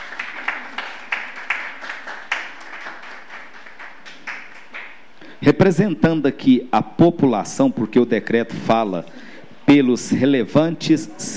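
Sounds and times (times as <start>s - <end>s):
round of applause from a group: 0.0s - 5.1s
speech: 5.4s - 11.3s.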